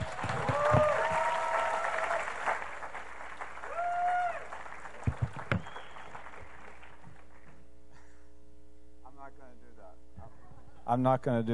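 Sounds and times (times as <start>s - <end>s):
audience applause greeting a pastor coming on stage: 0.0s - 7.6s
speech: 10.9s - 11.5s.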